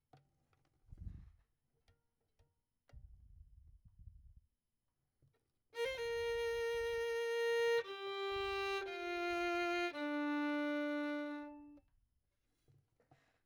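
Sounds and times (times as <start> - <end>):
violin: 5.8 - 11.9.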